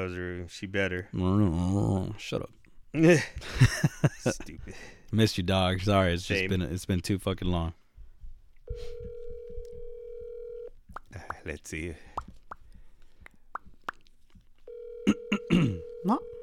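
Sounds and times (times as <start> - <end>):
speech: 0.0 - 7.8, 11.1 - 12.3, 16.0 - 16.4
laughter: 3.2 - 4.6
phone ringing tone: 8.7 - 10.8, 14.7 - 16.4.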